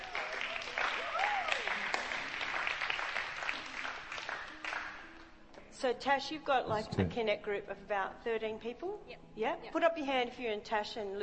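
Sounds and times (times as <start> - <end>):
faint voices and whoops: 0.0 - 1.8
crowd clapping: 0.0 - 5.3
speech: 5.8 - 11.2.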